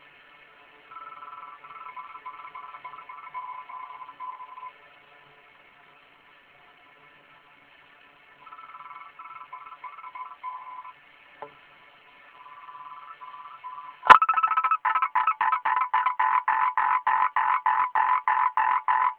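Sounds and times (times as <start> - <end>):
frog calling in rapid pulsed croaks: 1.0 - 4.7, 8.4 - 10.9, 12.4 - 19.1.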